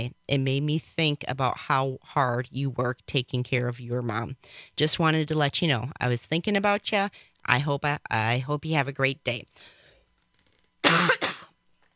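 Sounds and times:
speech: 0:00.0 - 0:09.8, 0:10.8 - 0:11.2
throat-clearing cough from a tickle in the throat: 0:10.8 - 0:11.6.

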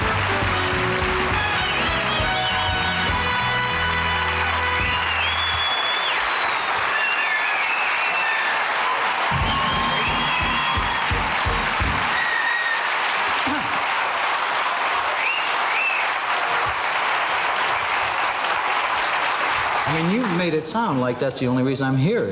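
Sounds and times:
audience applauding comedian Bob Newhart's entrance: 0:00.0 - 0:21.2
audience whistles and whoops: 0:04.6 - 0:13.7, 0:15.1 - 0:16.2
speech: 0:20.7 - 0:22.3.

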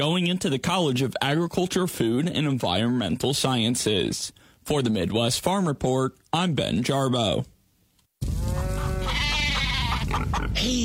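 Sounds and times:
speech: 0:00.0 - 0:07.5, 0:10.1 - 0:10.8
farm animals bleating: 0:08.4 - 0:10.4.

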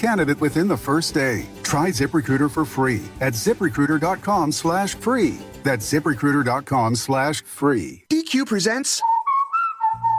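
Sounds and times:
speech: 0:00.0 - 0:09.1
whistle sound effect in a DQ advert: 0:09.0 - 0:10.1.

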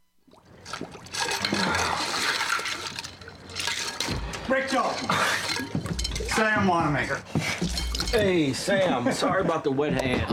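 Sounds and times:
water sloshing and splashing as a face is plunged into a basin of ice water: 0:00.2 - 0:07.0
churning bubbling water rush: 0:00.4 - 0:04.2
speech: 0:04.5 - 0:05.4, 0:06.4 - 0:10.3.

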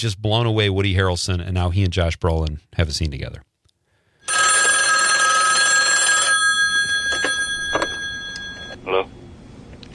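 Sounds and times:
speech: 0:00.0 - 0:03.5
telephone ringing: 0:04.2 - 0:08.8.

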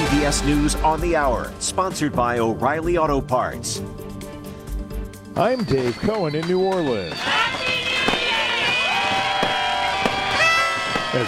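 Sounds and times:
speech: 0:00.2 - 0:04.1, 0:05.4 - 0:07.6
fireworks exploding over the Mississippi River: 0:05.6 - 0:11.2.

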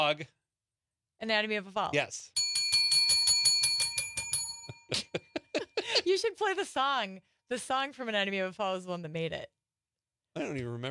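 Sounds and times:
speech: 0:00.0 - 0:00.4, 0:01.2 - 0:02.4, 0:04.9 - 0:05.2, 0:06.1 - 0:09.6, 0:10.4 - 0:10.8
bell ringing: 0:02.4 - 0:05.4.

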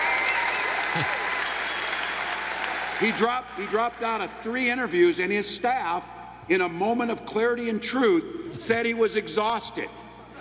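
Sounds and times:
crowd applauding: 0:00.0 - 0:05.0
speech: 0:00.9 - 0:01.2, 0:03.0 - 0:10.0.

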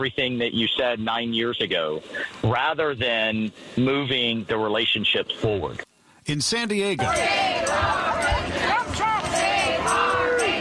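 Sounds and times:
speech: 0:00.0 - 0:08.8
protest crowd shouting and chanting at Cabrillo National Monument, San Diego: 0:06.8 - 0:10.6.

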